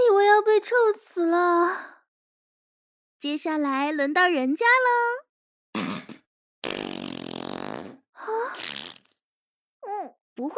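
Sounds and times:
speech: 0:00.6 - 0:01.9, 0:03.2 - 0:05.3, 0:10.0 - 0:10.5
loud farting: 0:05.8 - 0:09.2.

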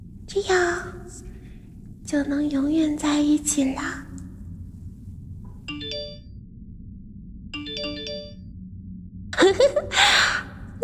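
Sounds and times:
low hum: 0:00.0 - 0:10.8
speech: 0:00.3 - 0:01.3, 0:02.1 - 0:04.1
phone message notification tone: 0:05.7 - 0:06.2, 0:07.6 - 0:08.4.

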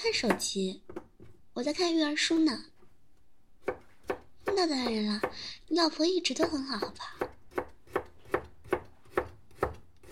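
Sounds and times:
speech: 0:00.0 - 0:00.9, 0:01.6 - 0:02.7, 0:04.5 - 0:07.3
knife chopping vegetables on a cutting board: 0:00.0 - 0:01.4, 0:03.6 - 0:05.5, 0:06.3 - 0:10.1.

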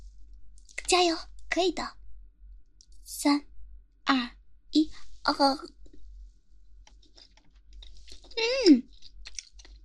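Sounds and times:
speech: 0:00.9 - 0:02.0, 0:03.1 - 0:03.5, 0:04.1 - 0:05.8, 0:08.4 - 0:08.9
chewing a chewy piece of food: 0:06.8 - 0:09.8.

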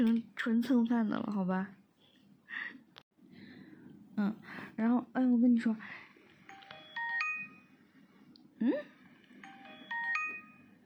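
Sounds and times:
speech: 0:00.0 - 0:01.8, 0:04.2 - 0:06.0, 0:08.6 - 0:08.9
mobile phone message notification sound: 0:06.5 - 0:07.8, 0:09.4 - 0:10.8.

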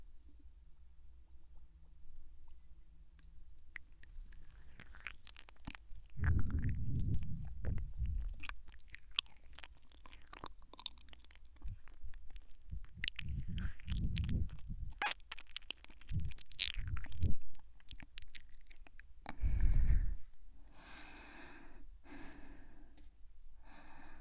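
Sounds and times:
someone chewing medicine: 0:03.2 - 0:19.5.

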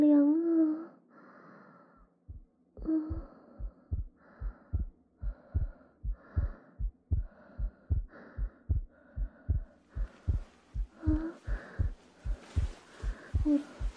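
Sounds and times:
fast heartbeat heard through a stethoscope: 0:02.3 - 0:13.9
faint rustling scrapes: 0:12.0 - 0:13.9.

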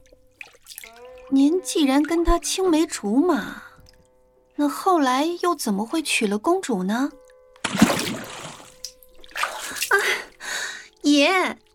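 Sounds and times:
speech: 0:01.3 - 0:03.7, 0:04.6 - 0:07.8, 0:11.2 - 0:11.6
water splashing as a person is dragged into it: 0:07.6 - 0:10.8.

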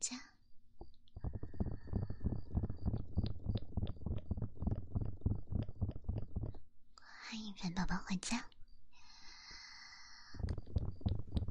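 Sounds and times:
ASMR ear tapping like tin foil: 0:01.2 - 0:06.6, 0:10.4 - 0:11.4
speech: 0:07.4 - 0:08.5.

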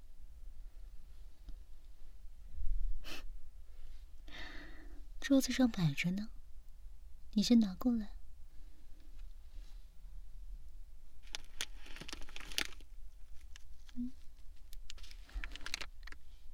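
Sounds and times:
speech: 0:05.3 - 0:06.4, 0:07.4 - 0:08.2
plastic packaging bag being torn open: 0:11.2 - 0:13.6, 0:14.9 - 0:16.2.

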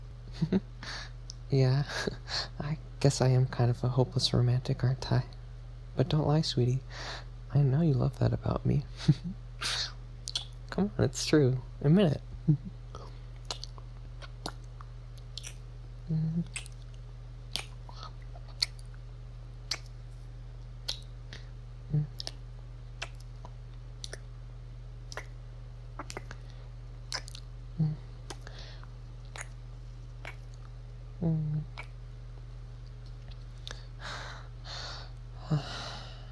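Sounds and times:
steady low hum: 0:00.0 - 0:36.3
speech: 0:00.4 - 0:00.7, 0:01.5 - 0:05.4, 0:06.0 - 0:09.8, 0:10.8 - 0:12.8, 0:16.1 - 0:16.6
wet kissing smacks and clicks: 0:10.2 - 0:10.6, 0:13.4 - 0:15.6, 0:16.3 - 0:16.9, 0:17.5 - 0:18.9, 0:19.7 - 0:20.0, 0:20.8 - 0:21.4, 0:22.0 - 0:22.4, 0:23.0 - 0:24.3, 0:25.1 - 0:25.4, 0:26.0 - 0:26.4, 0:27.1 - 0:28.5, 0:29.2 - 0:29.6, 0:30.2 - 0:30.7, 0:31.6 - 0:32.0.

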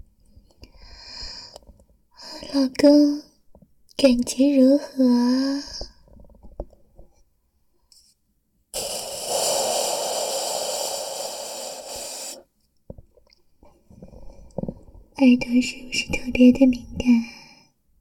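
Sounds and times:
close breathing into the microphone: 0:00.7 - 0:01.6, 0:08.8 - 0:12.5
speech: 0:02.4 - 0:03.3, 0:04.0 - 0:05.7, 0:15.2 - 0:17.3
mouth clicks: 0:08.8 - 0:12.4.

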